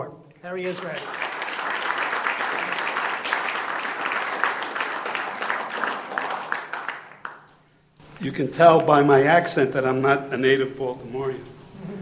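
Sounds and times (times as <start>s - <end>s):
speech: 0.4s - 1.7s, 8.2s - 11.6s
audience applause welcoming a speaker to a Baltimore history talk: 0.7s - 7.6s.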